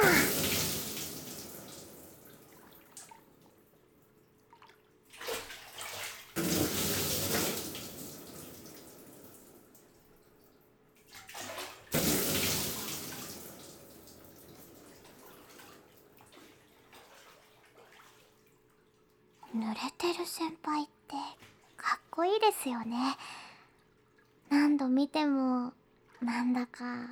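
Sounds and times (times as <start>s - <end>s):
water being poured over someone: 0.0s - 19.6s
speech: 20.0s - 21.4s, 22.2s - 23.4s, 24.7s - 27.1s.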